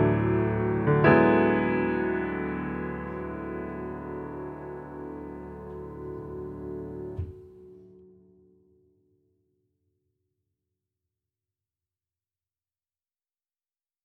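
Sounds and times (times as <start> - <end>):
little piano: 0.0 - 9.3.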